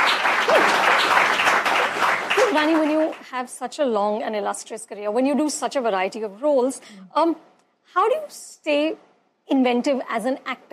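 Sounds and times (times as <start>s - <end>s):
audience applause: 0.0s - 3.2s
person whooping: 0.5s - 0.9s
speech: 2.6s - 10.7s.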